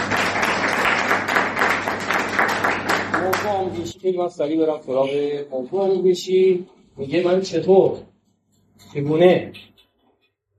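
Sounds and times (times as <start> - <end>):
audience applause: 0.0 - 3.8
speech: 3.5 - 8.1, 8.8 - 9.7.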